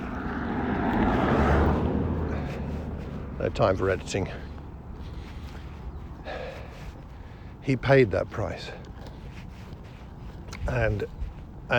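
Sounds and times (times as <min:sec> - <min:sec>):
car driving past: 0:00.0 - 0:04.4
speech: 0:03.4 - 0:04.5, 0:07.6 - 0:08.8, 0:10.6 - 0:11.7.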